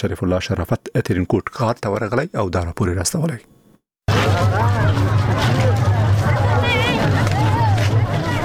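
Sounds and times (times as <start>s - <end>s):
speech: 0.0s - 5.8s
crowd of Eid festival-goers babbling in Tarin Kot, Uruzgan: 4.1s - 8.4s.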